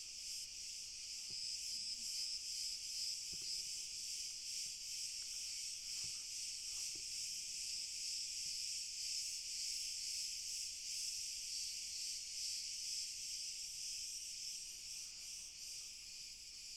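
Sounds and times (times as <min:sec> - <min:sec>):
cricket chorus: 0:00.0 - 0:16.7.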